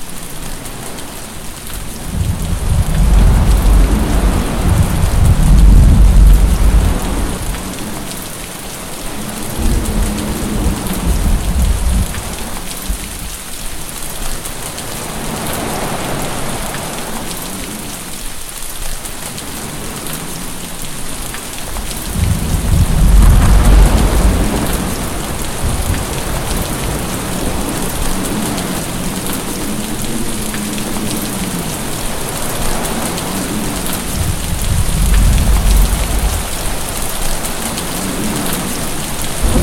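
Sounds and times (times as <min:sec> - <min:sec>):
heavy rain: 0:00.0 - 0:39.6
thunder: 0:02.0 - 0:07.6, 0:09.5 - 0:13.3, 0:21.8 - 0:28.8, 0:34.1 - 0:36.9, 0:39.4 - 0:39.6.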